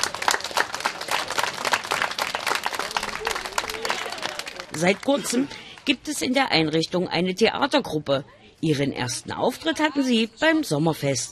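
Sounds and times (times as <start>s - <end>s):
children applauding: 0.0s - 5.8s
speech: 4.8s - 11.3s.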